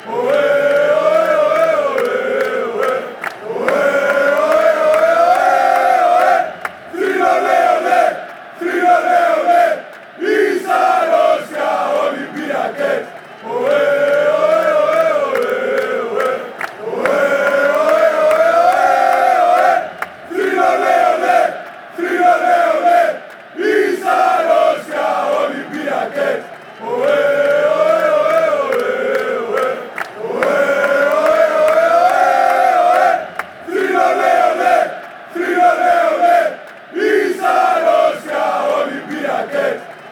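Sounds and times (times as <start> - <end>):
people chanting: 0.0 - 40.0.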